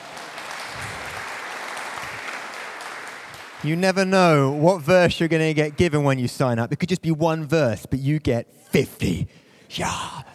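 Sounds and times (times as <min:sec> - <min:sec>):
audience applause: 0:00.0 - 0:06.1
speech: 0:03.6 - 0:10.3.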